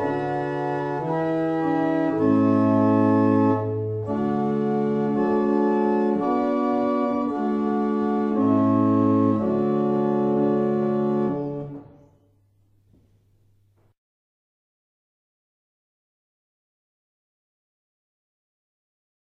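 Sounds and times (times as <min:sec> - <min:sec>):
barrel organ: 0:00.0 - 0:12.2.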